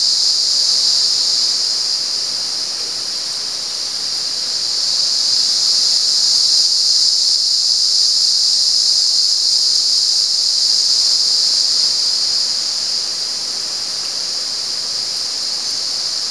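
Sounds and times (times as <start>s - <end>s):
cicada buzzing: 0.0s - 16.2s.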